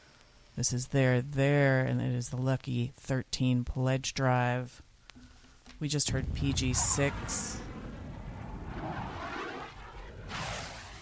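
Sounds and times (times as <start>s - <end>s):
speech: 0.6s - 4.9s, 5.8s - 7.7s
aircraft passing overhead: 6.1s - 10.9s.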